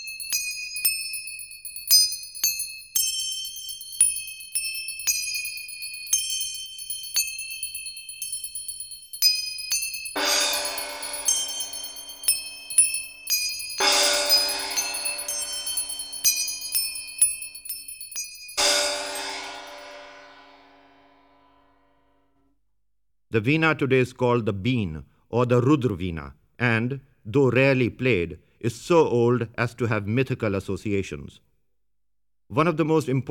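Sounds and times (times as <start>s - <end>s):
bells ringing: 0.0s - 21.3s
manjira cymbals: 9.8s - 17.7s, 18.5s - 21.8s
gongs: 10.1s - 17.5s, 18.6s - 21.9s
speech: 23.3s - 31.5s, 32.5s - 33.2s.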